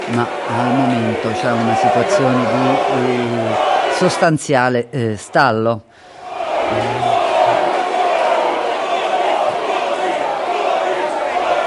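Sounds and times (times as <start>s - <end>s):
protesters shouting at a rally: 0.0s - 4.5s, 6.1s - 11.6s
speech: 0.1s - 6.1s.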